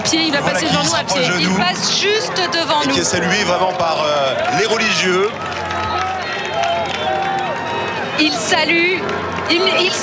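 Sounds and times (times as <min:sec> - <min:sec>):
large crowd cheering and shouting: 0:00.0 - 0:10.0
speech: 0:00.1 - 0:06.1, 0:08.2 - 0:10.0
scattered clapping: 0:03.4 - 0:10.0.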